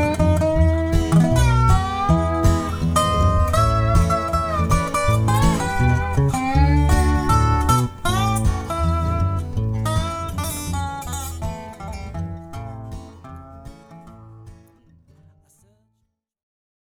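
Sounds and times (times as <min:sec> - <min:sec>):
resonator: 0:00.0 - 0:12.5.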